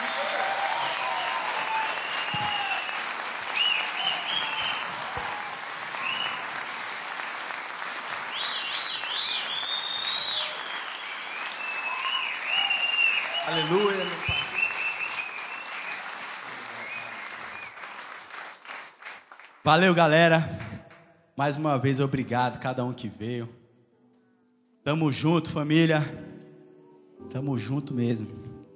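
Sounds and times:
audience applauding loudly: 0:00.0 - 0:21.0
speech: 0:19.7 - 0:20.6, 0:21.4 - 0:23.6, 0:24.8 - 0:26.2, 0:27.3 - 0:28.4.

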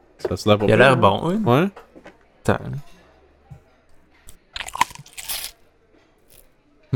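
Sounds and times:
speech: 0:00.2 - 0:01.8, 0:02.4 - 0:02.9
biting and chewing a burger: 0:04.3 - 0:05.6, 0:06.3 - 0:06.5.

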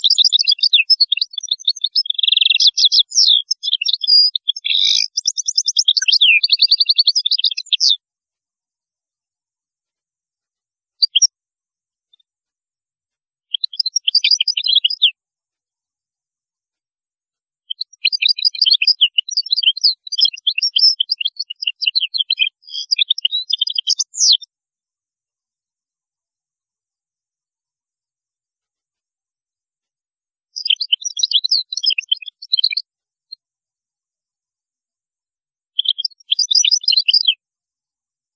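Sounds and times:
European goldfinch twittering song: 0:00.0 - 0:08.0, 0:13.5 - 0:15.1, 0:17.8 - 0:24.5, 0:30.6 - 0:32.8, 0:35.8 - 0:37.4.

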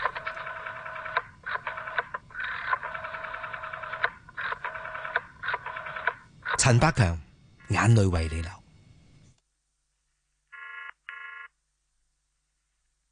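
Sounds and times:
rotary dial telephone being dialed: 0:00.0 - 0:06.6
speech: 0:06.6 - 0:08.6.

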